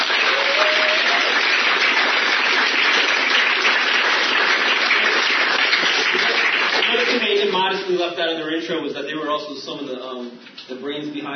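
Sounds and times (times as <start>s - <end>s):
audience round of applause: 0.0s - 7.8s
speech: 8.0s - 11.3s.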